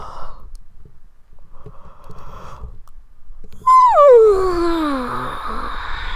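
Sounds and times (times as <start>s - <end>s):
female comfy cuddling noises: 3.6s - 5.6s
woman yawning: 3.6s - 6.1s.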